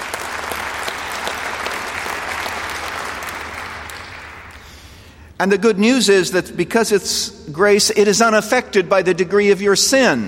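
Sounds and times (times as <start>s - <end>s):
audience applause: 0.0s - 4.8s
speech: 5.4s - 10.2s.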